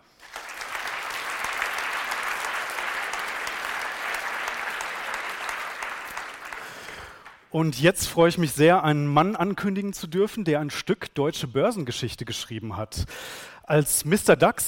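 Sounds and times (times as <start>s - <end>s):
audience applause: 0.0s - 7.4s
speech: 7.5s - 14.6s.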